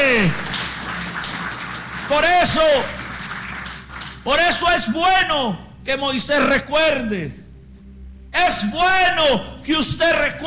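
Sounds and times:
audience applause: 0.0s - 4.3s
speech: 2.1s - 3.0s, 4.2s - 7.4s, 8.4s - 10.4s.

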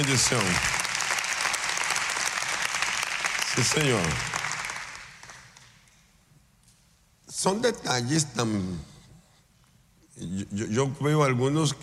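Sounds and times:
speech: 0.0s - 0.8s, 3.6s - 4.4s, 7.4s - 8.9s, 10.2s - 11.8s
sustained crowd applause: 0.0s - 5.8s.

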